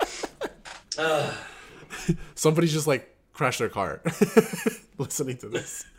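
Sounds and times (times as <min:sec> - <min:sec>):
person sneezing after quick sharp breaths: 0:01.0 - 0:01.6
speech: 0:01.0 - 0:05.9.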